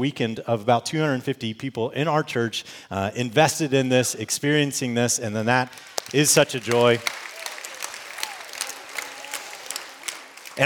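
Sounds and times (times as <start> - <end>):
speech: 0.0 - 7.3
audience clapping: 5.5 - 10.6.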